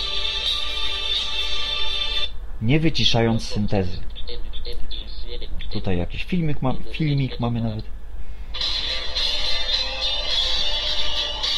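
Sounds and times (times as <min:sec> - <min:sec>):
mobile phone ringtone being previewed: 0:00.0 - 0:02.3, 0:08.6 - 0:11.5
speech: 0:02.6 - 0:04.4, 0:05.7 - 0:08.0.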